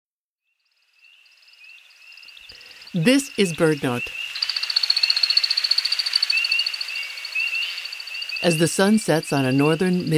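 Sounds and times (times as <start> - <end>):
speech: 2.9 - 4.2, 8.4 - 10.1
American woodcock courtship flight sound: 4.0 - 8.4.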